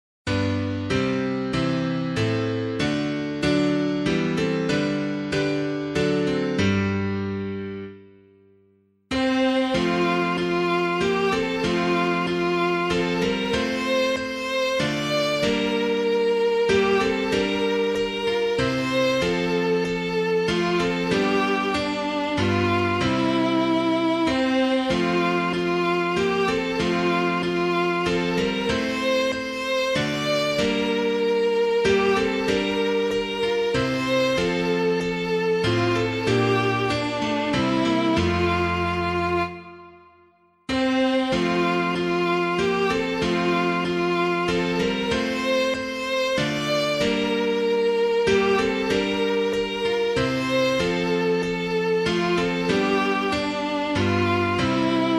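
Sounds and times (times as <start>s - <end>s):
piano: 0.2s - 55.1s.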